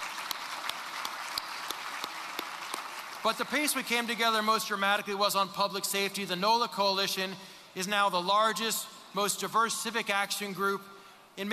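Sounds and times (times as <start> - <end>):
audience applause: 0.0 - 3.9
speech: 3.2 - 11.5.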